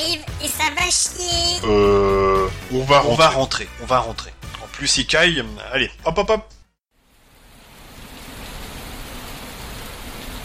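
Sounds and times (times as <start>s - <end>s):
speech: 0.9s - 2.0s, 2.7s - 6.6s
rain as a storm gathers: 6.9s - 10.4s.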